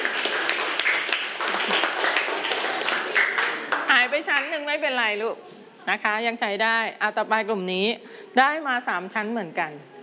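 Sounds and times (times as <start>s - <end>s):
group clapping for a class team: 0.0s - 4.8s
speech: 4.4s - 9.9s.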